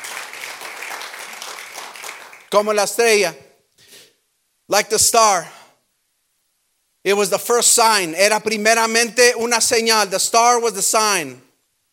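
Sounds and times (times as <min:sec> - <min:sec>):
crowd applause: 0:00.0 - 0:02.5
speech: 0:02.5 - 0:03.4, 0:04.7 - 0:05.6, 0:07.0 - 0:11.5.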